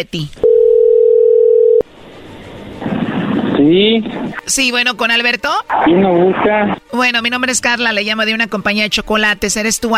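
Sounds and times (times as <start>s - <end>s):
speech: 0.0s - 0.4s, 3.6s - 9.9s
telephone ringback tone: 0.4s - 1.8s.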